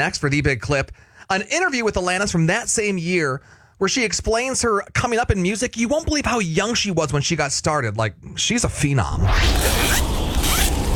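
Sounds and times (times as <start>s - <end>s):
speech: 0.0s - 10.1s
zipper of a child's new winter coat being zipped up: 9.3s - 10.9s.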